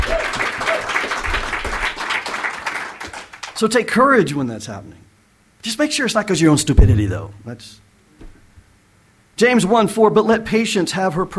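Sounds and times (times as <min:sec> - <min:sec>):
audience applauding and clapping: 0:00.0 - 0:03.6
speech: 0:03.6 - 0:07.8, 0:09.4 - 0:11.3.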